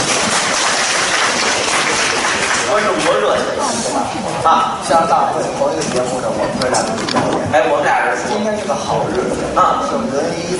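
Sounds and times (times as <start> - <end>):
audience applause at a crosstalk comedy show in Nanjing: 0.0 - 3.7
speech: 2.8 - 10.5.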